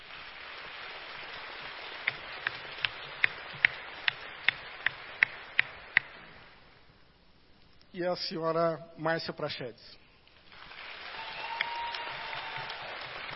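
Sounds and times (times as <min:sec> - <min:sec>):
applause: 0:00.0 - 0:05.8, 0:10.4 - 0:13.3
speech: 0:08.0 - 0:10.0.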